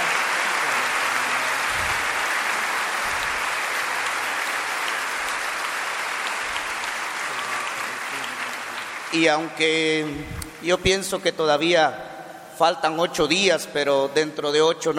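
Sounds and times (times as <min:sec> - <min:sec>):
audience applauding in church: 0:00.0 - 0:09.7
speech: 0:09.1 - 0:14.9.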